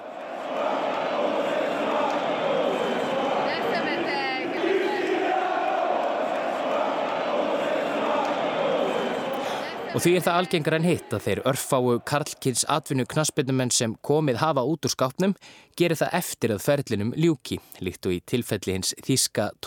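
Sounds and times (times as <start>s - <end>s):
stadium crowd jeering Ronaldo: 0.0s - 13.0s
speech: 10.0s - 19.6s.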